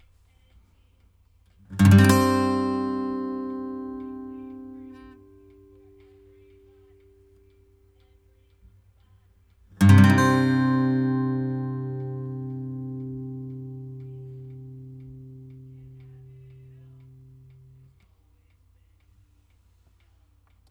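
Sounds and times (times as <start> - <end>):
acoustic guitar: 1.7 - 7.7, 9.8 - 17.9.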